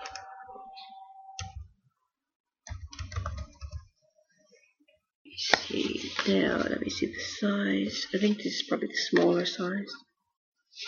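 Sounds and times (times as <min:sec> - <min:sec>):
typing on a computer keyboard while checking prices online: 0:02.7 - 0:03.9
speech: 0:06.3 - 0:10.1.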